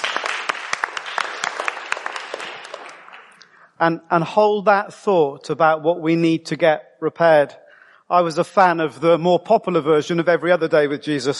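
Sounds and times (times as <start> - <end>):
audience applause: 0.0 - 3.4
speech: 3.8 - 11.3.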